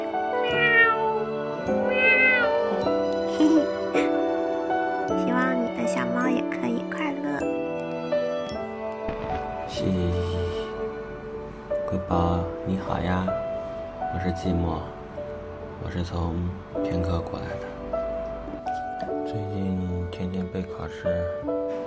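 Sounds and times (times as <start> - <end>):
music: 0.0 - 21.8
person imitating cat meows: 0.4 - 1.2, 1.8 - 2.9
speech: 14.2 - 15.0, 15.9 - 18.0, 19.3 - 21.8.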